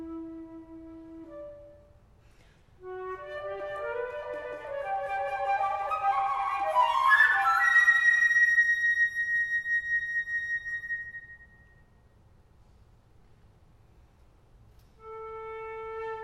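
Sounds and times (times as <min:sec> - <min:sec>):
solo flute etude: 0:00.0 - 0:02.1, 0:02.8 - 0:12.0, 0:15.0 - 0:16.2.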